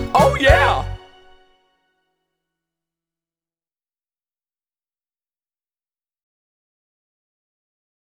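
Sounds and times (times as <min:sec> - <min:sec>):
dance music: 0:00.1 - 0:00.9.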